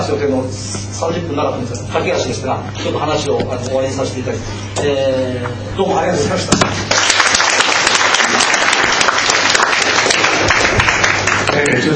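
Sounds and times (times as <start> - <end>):
speech: 0.1 - 6.9, 11.6 - 11.9
audience applause: 6.9 - 11.8.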